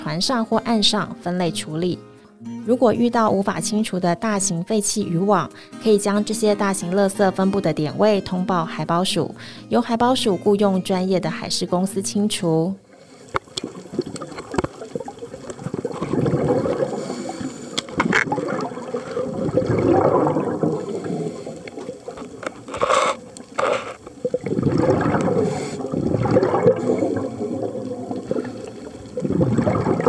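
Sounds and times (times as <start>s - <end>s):
speech: 0.1s - 12.8s, 13.6s - 14.2s
diver breathing underwater: 9.4s - 9.7s, 12.8s - 30.0s
diver's exhaust bubbles gurgling underwater: 13.4s - 22.7s, 24.2s - 30.0s.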